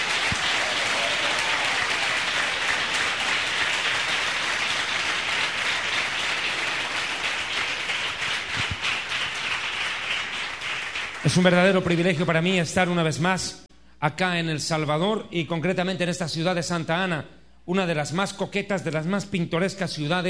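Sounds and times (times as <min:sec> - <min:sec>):
audience applause: 0:00.0 - 0:12.0
speech: 0:11.2 - 0:20.2.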